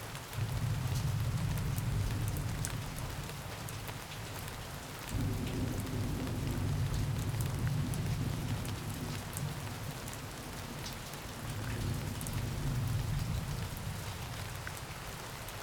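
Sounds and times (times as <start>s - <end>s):
thunderstorm: 0.1s - 15.5s.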